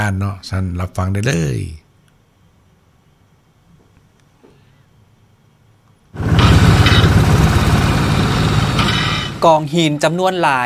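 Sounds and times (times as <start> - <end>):
speech: 0.0 - 1.8, 9.4 - 10.6
dam construction machinery engines: 6.2 - 9.5.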